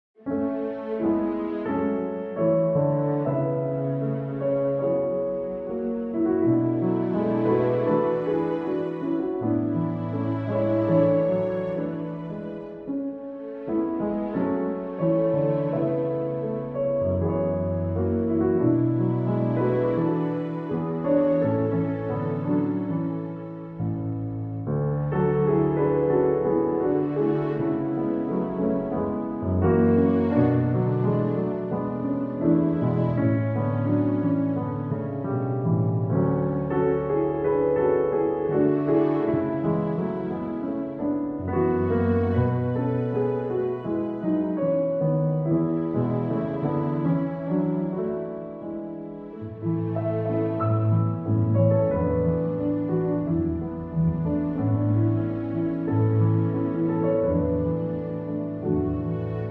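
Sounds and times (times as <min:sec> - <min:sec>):
strings: 0:00.2 - 0:59.4.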